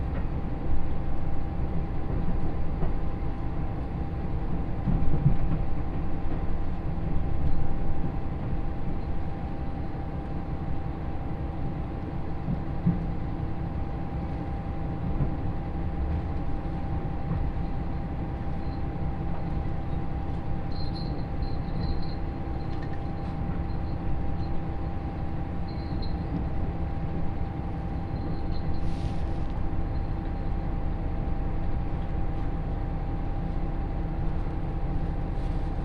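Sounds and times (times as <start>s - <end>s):
Yosan Line limited express Uwakai train rumble: 0.0s - 35.8s
thin constant whine: 17.4s - 32.1s.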